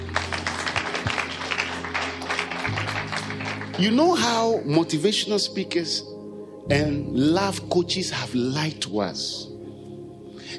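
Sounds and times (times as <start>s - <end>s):
audience clapping hands: 0.0s - 4.2s
speech: 3.8s - 6.1s, 6.7s - 9.5s.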